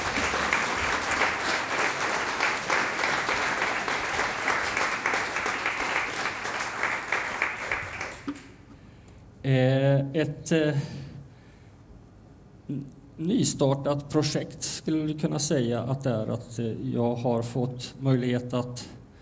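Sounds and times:
audience applause for a string quartet: 0:00.0 - 0:08.6
speech: 0:09.5 - 0:11.0, 0:12.7 - 0:19.0.

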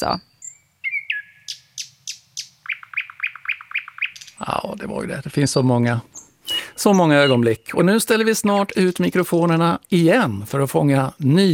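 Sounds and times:
speech: 0:00.0 - 0:00.3, 0:04.4 - 0:06.2, 0:06.8 - 0:11.5
nightingale singing: 0:00.0 - 0:05.1, 0:05.9 - 0:10.0.

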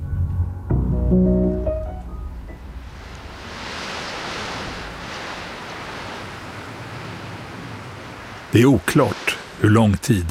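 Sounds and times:
speech: 0:01.1 - 0:01.6, 0:08.6 - 0:10.2
strong wind at a harbour: 0:02.0 - 0:10.2
waves at a harbour: 0:02.0 - 0:10.2.

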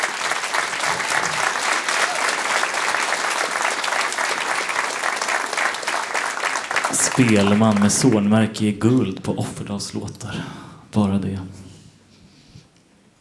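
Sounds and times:
warm audience applause: 0:00.0 - 0:08.4
speech: 0:07.2 - 0:11.6.

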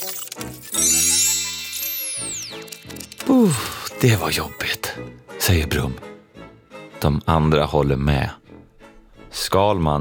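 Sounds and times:
robot whirring as it bends: 0:00.0 - 0:04.0
speech: 0:03.4 - 0:06.1, 0:07.0 - 0:08.4, 0:09.4 - 0:09.9.

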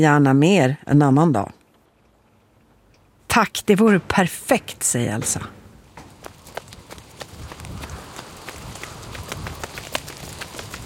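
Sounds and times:
speech: 0:00.0 - 0:01.6, 0:03.4 - 0:05.6
running footsteps: 0:05.9 - 0:10.8.

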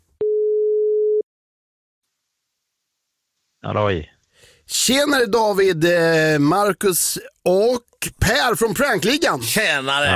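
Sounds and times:
telephone line tone after dialing a number for a prank call: 0:00.2 - 0:01.2
speech: 0:03.6 - 0:10.1.

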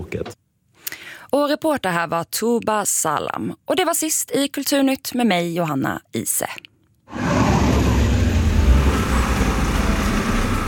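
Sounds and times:
speech: 0:00.1 - 0:00.4, 0:01.3 - 0:07.3
car engines idling and revving at a motor festival: 0:07.1 - 0:10.6.

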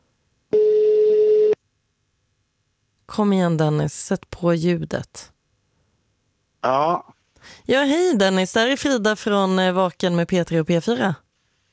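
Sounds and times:
telephone call tone: 0:00.5 - 0:01.6
speech: 0:03.2 - 0:05.3, 0:06.6 - 0:11.2.

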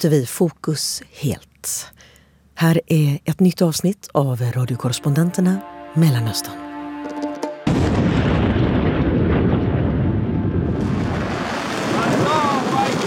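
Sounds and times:
speech: 0:00.0 - 0:06.6
Iranian rocket launches toward Israel: 0:07.7 - 0:13.0.

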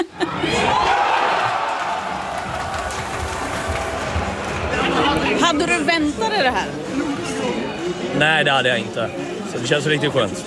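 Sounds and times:
crowd cheering in a restaurant: 0:00.1 - 0:05.8
speech: 0:05.5 - 0:06.9, 0:08.2 - 0:10.4.

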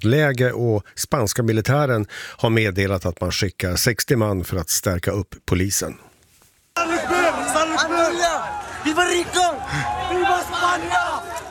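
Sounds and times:
speech: 0:00.0 - 0:06.1
large crowd shouting and yelling: 0:06.8 - 0:11.5.

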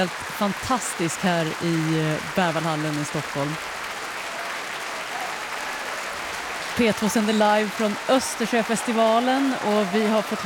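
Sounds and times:
speech: 0:00.0 - 0:03.8, 0:06.8 - 0:10.4
concert audience applauding: 0:00.0 - 0:10.4
concert audience shouting: 0:03.7 - 0:10.4.

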